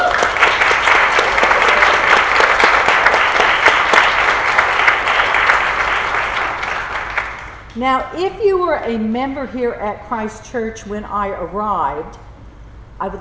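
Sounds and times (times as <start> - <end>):
applause: 0.0 - 7.7
speech: 7.8 - 12.3, 13.0 - 13.1.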